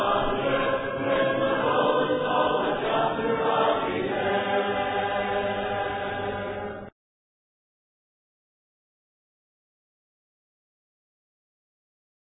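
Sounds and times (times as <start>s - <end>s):
a cappella hymn singing: 0.0s - 6.9s.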